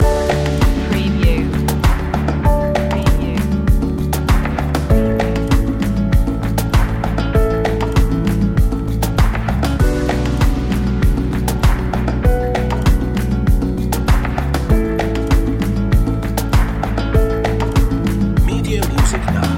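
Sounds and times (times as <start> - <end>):
music loop: 0.0 - 19.5.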